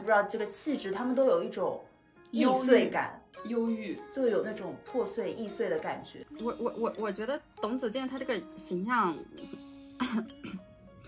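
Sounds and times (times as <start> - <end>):
speech: 0.1 - 10.4
cough: 10.0 - 11.0.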